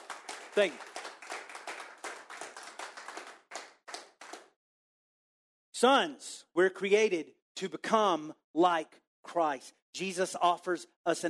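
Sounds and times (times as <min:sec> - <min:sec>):
audience clapping: 0:00.0 - 0:04.6
speech: 0:00.6 - 0:00.9, 0:05.8 - 0:11.2.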